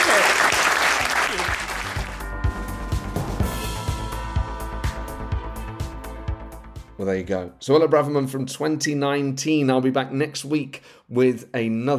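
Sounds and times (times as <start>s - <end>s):
audience applause: 0.0s - 2.2s
music with steady beat and sustained tones: 1.5s - 7.0s
speech: 7.0s - 11.9s.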